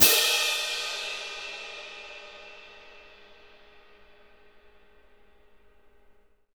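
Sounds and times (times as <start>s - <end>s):
orchestral cymbal: 0.0s - 6.0s.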